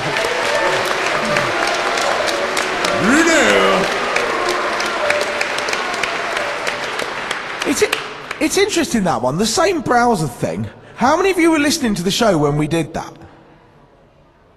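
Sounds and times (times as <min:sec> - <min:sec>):
audience clapping: 0:00.0 - 0:08.9
person shouting: 0:03.0 - 0:03.9
speech: 0:08.4 - 0:13.2.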